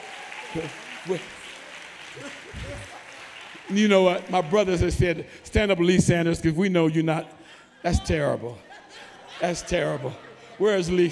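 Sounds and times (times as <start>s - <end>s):
audience clapping hands: 0.0s - 5.4s
speech: 0.5s - 1.4s, 2.1s - 3.0s, 3.6s - 8.7s, 9.4s - 11.1s
laughter: 2.0s - 5.1s, 7.8s - 11.1s.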